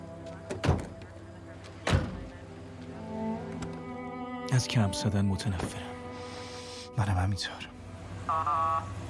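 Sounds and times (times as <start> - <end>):
doors shutting with solid thuds: 0.2 - 2.4
speech: 4.5 - 6.0, 7.0 - 9.0.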